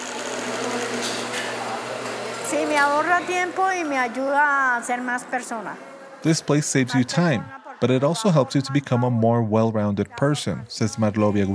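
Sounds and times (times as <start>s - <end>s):
sewing machine running at a women's care centre in Bogotá, Colombia: 0.0s - 4.2s
speech: 2.7s - 11.5s.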